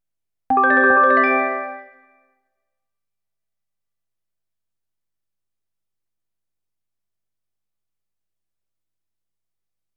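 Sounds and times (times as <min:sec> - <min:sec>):
equipment level up chime: 0:00.5 - 0:02.0.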